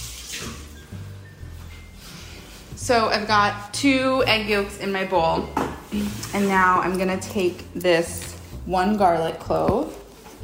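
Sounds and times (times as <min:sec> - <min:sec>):
tap water running over hands being washed during cooking: 0:00.0 - 0:01.1
speech: 0:02.9 - 0:10.0.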